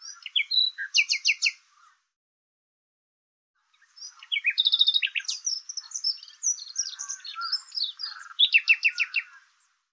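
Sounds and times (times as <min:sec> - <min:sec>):
bird chirping song: 0:00.0 - 0:02.1, 0:03.6 - 0:09.9.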